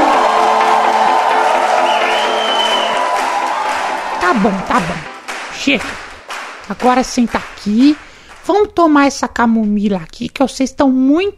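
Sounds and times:
crowd shouting and cheering: 0.0 - 6.8
clapping: 0.0 - 8.7
speech: 4.3 - 6.1, 6.7 - 11.3.

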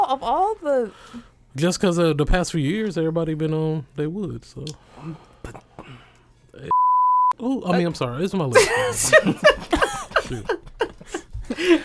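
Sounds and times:
speech: 0.1 - 6.0, 6.6 - 6.8, 7.4 - 11.8
censor bleep: 6.7 - 7.4
laughter: 7.8 - 11.8.

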